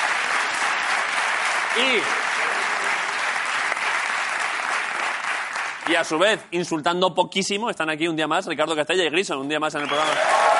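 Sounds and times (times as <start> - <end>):
crowd applauding: 0.0 - 6.3, 9.8 - 10.5
speech: 1.8 - 2.2, 5.9 - 10.4.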